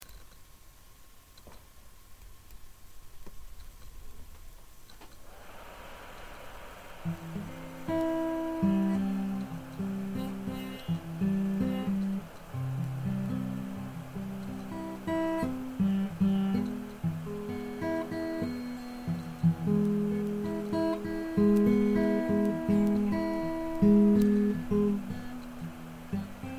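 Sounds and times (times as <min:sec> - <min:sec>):
guitar playing: 0:07.0 - 0:26.5.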